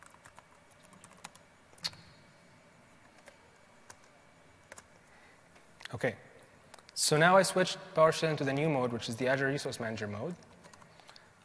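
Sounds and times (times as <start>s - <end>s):
faint typing on a computer keyboard entering a PowerShell command: 0.0s - 2.0s, 3.0s - 4.9s, 10.3s - 11.4s
speech: 6.0s - 6.3s, 7.0s - 10.5s.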